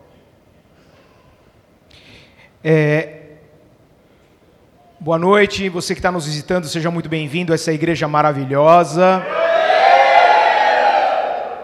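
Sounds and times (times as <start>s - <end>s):
speech: 2.6s - 3.2s, 5.0s - 9.4s
church congregation shouting together: 9.2s - 11.6s.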